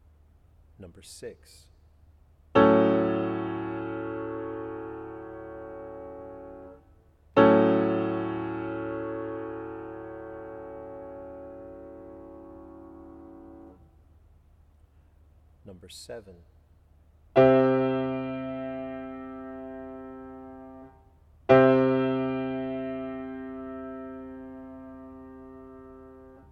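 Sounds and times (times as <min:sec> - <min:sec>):
chords: 0:02.6 - 0:14.1, 0:17.4 - 0:26.5.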